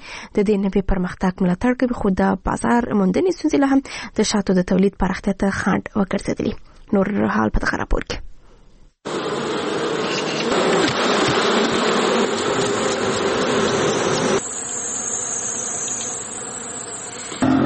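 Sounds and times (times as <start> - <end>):
speech: 0.4 - 8.3, 9.0 - 9.4
honeybees buzzing at a bee farm in Helmand: 9.1 - 17.6.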